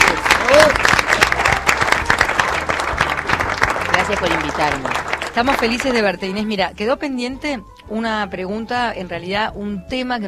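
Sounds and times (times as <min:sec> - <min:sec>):
studio audience applause: 0:00.0 - 0:06.3
speech: 0:04.1 - 0:10.2.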